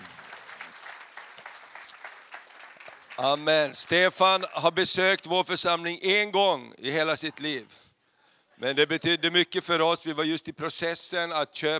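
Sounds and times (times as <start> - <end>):
audience applause: 0.0 - 4.8
speech: 3.2 - 7.8, 8.6 - 11.7.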